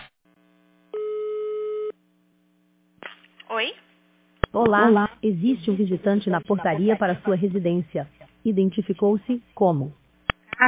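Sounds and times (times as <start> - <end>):
faint low hum: 0.3 - 10.6
telephone ringing tone calling a resident from a building's front desk: 1.0 - 1.9
speech: 4.6 - 10.0
laughter: 6.0 - 8.0.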